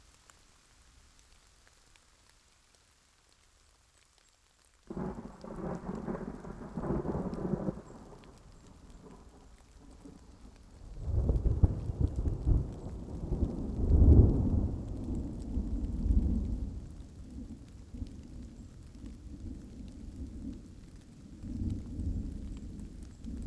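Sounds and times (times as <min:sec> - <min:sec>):
rain: 0:00.0 - 0:23.4
thunder: 0:04.9 - 0:10.2, 0:10.9 - 0:16.9.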